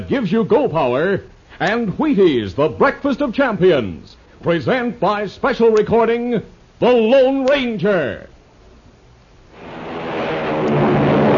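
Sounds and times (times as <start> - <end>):
speech: 0.1 - 8.3
American Airlines flagship airliner taking off: 9.5 - 11.3.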